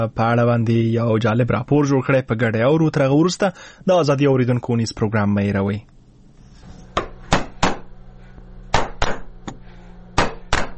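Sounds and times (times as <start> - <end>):
speech: 0.0 - 6.0
mallet striking a chisel carving Afghanistan's national emblem into wood in Nuristan: 8.7 - 9.6, 10.2 - 10.7.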